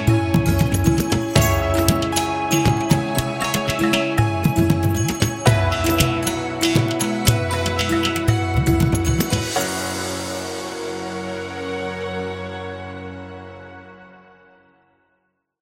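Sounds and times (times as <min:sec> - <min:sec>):
upbeat India travel music: 0:00.0 - 0:12.5.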